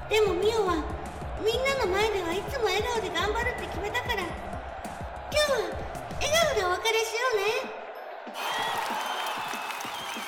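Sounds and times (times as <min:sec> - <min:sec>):
audience cheering and applauding for streamer Mio at a farewell: 0:00.0 - 0:10.2
speech: 0:00.1 - 0:04.6, 0:05.4 - 0:07.8.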